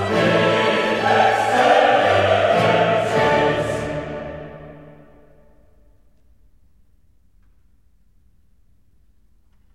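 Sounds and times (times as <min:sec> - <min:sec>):
choir singing a sanctus: 0:00.0 - 0:05.7.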